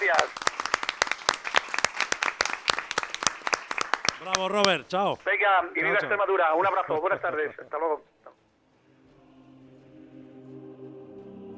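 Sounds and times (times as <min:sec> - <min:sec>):
audience applause: 0:00.0 - 0:05.2
speech: 0:04.4 - 0:08.4.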